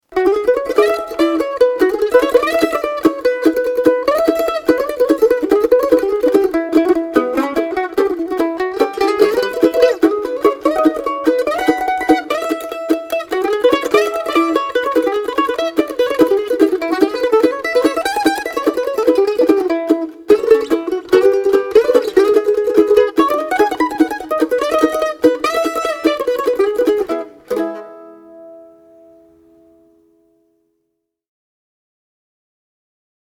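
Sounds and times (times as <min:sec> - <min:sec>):
mandolin: 0:00.0 - 0:30.9.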